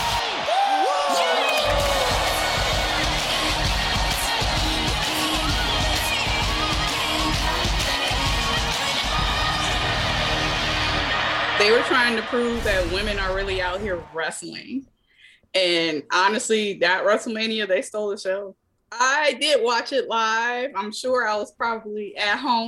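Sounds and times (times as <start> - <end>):
huge arena crowd roaring and chanting: 0.0 - 14.2
speech: 11.7 - 14.9, 15.5 - 22.6.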